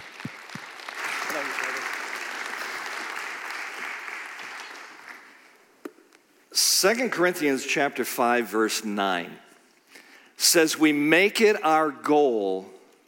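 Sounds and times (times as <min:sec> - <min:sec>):
audience applause: 0:00.0 - 0:05.5
speech: 0:06.8 - 0:09.4, 0:10.5 - 0:12.8.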